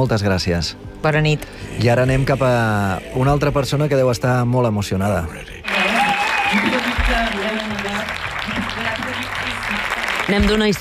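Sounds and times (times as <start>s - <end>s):
speech: 0.0s - 5.8s, 10.3s - 10.7s
large audience applause: 5.6s - 10.7s.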